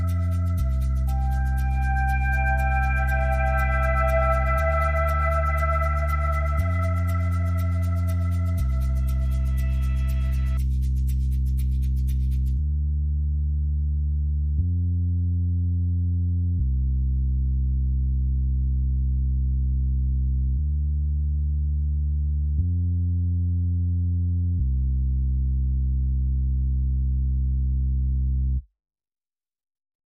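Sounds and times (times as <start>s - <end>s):
percussion: 0.0s - 12.7s
bass: 0.0s - 28.7s.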